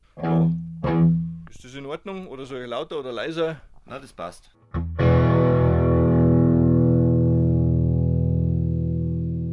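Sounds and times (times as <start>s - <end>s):
speech: 1.6s - 5.1s
electric guitar through an amp with medium crunch distortion strummed chord: 4.8s - 9.5s.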